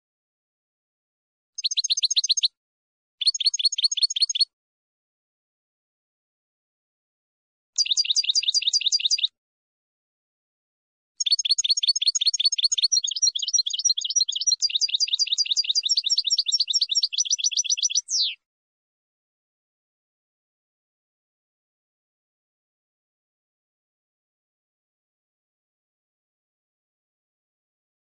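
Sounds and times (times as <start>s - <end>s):
finch song: 1.6s - 2.6s, 3.2s - 4.5s, 7.8s - 9.4s, 11.2s - 18.5s.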